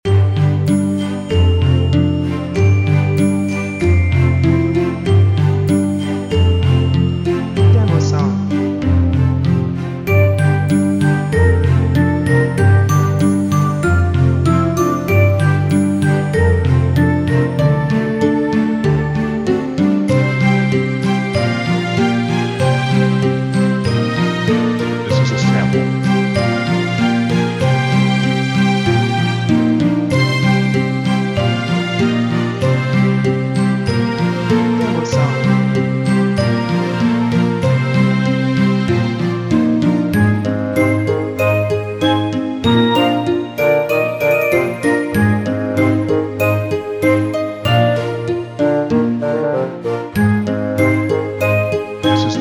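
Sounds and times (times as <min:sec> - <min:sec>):
tricky adventure music loop: 0:00.0 - 0:52.3.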